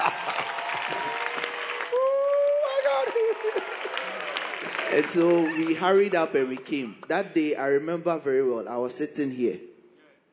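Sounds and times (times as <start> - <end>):
audience clapping: 0.0 - 7.4
speech: 4.9 - 9.7.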